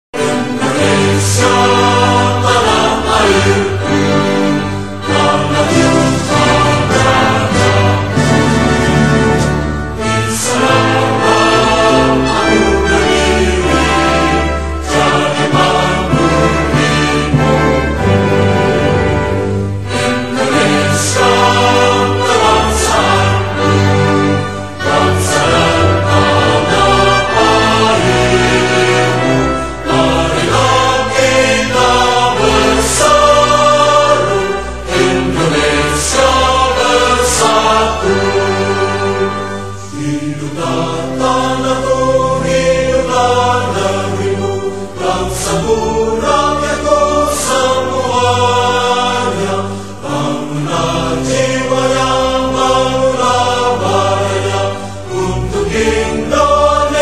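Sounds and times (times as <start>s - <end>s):
choir singing a national anthem: 0.2s - 57.0s.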